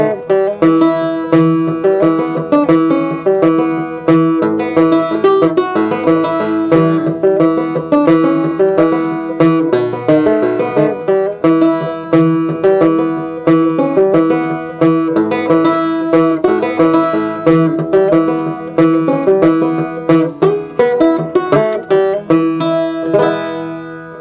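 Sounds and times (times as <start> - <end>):
1919 Orpheum Style 1 banjo guitar natural: 0.0 - 24.1.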